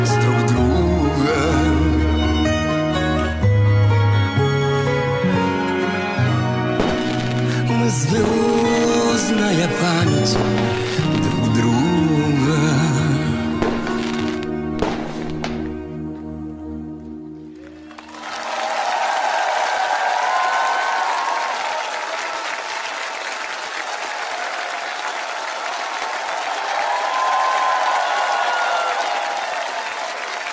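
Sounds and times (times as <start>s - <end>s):
sustained musical chords: 0.0s - 18.1s
audience applause: 5.7s - 12.7s, 17.5s - 30.5s.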